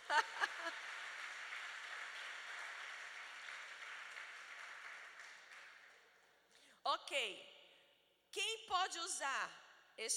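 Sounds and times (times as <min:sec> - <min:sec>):
laughter: 0:00.0 - 0:01.0
crowd applause: 0:00.0 - 0:06.1
speech: 0:07.0 - 0:07.6, 0:08.4 - 0:10.1.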